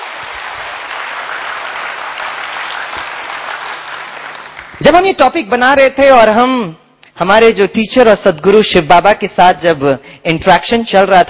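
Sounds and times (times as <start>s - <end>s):
audience clapping: 0.0s - 5.0s
speech: 4.8s - 11.2s.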